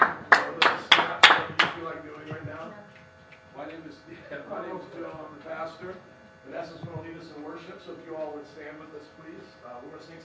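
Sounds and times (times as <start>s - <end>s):
audience hand clapping: 0.0s - 2.5s
speech: 5.8s - 10.2s.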